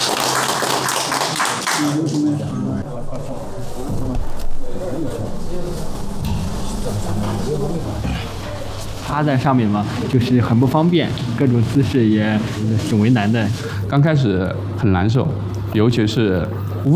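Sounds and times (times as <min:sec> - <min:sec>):
audience applause: 0:00.0 - 0:02.4
speech: 0:01.8 - 0:06.1, 0:06.8 - 0:08.4, 0:09.1 - 0:16.9.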